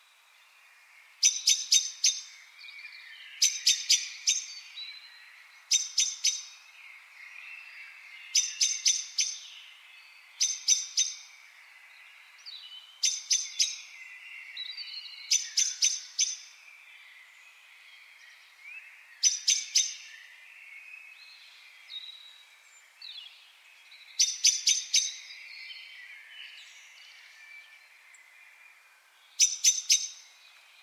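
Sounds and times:
other birds chirping: 1.1 - 30.8
common blackbird chink calls: 1.2 - 2.3, 3.4 - 4.6, 5.7 - 6.6, 8.3 - 9.5, 10.4 - 11.3, 13.0 - 13.9, 15.3 - 16.5, 19.2 - 20.1, 24.2 - 25.3, 29.4 - 30.8.

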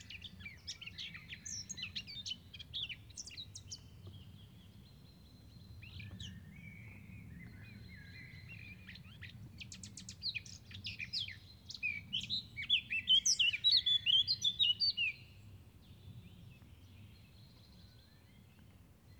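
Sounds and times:
Eurasian blackcap song: 0.0 - 5.0, 8.4 - 15.4.

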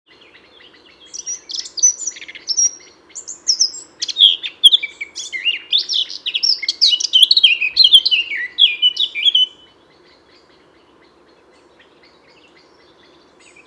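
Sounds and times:
faint constant hum: 0.1 - 13.6
Eurasian blackcap warbling: 3.6 - 9.5.

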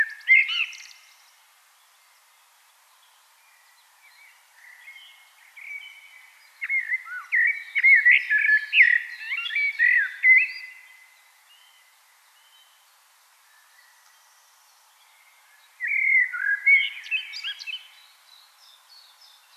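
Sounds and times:
common blackbird singing: 0.0 - 1.4, 3.0 - 12.8, 15.0 - 19.5.

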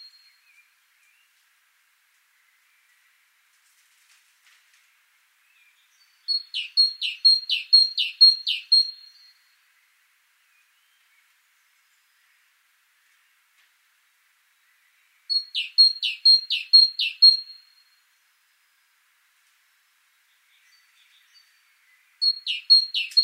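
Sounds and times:
Great tit singing: 5.7 - 9.4, 15.2 - 17.8, 20.2 - 23.2.

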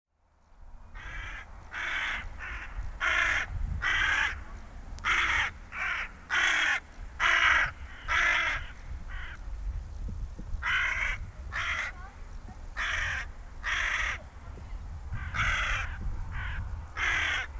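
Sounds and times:
carrion crow cawing: 1.0 - 4.4, 5.0 - 9.4, 10.6 - 12.0, 12.8 - 14.3, 15.1 - 17.5.

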